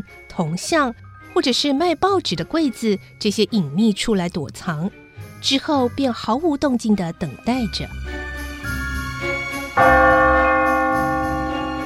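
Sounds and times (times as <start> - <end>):
speech: 0.0 - 8.2, 9.8 - 10.3
large clock bell striking the hour: 9.8 - 11.8.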